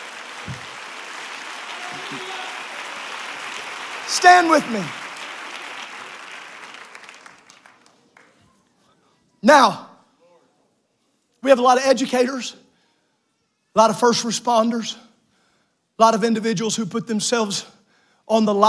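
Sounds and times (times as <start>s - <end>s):
audience clapping hands: 0.0s - 8.6s
speech: 4.1s - 5.0s, 9.4s - 9.8s, 11.4s - 12.7s, 13.8s - 15.1s, 16.0s - 18.6s.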